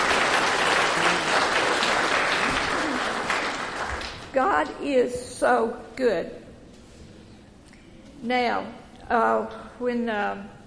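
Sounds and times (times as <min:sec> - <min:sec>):
audience applause: 0:00.0 - 0:04.3
speech: 0:04.4 - 0:06.4, 0:08.2 - 0:10.6.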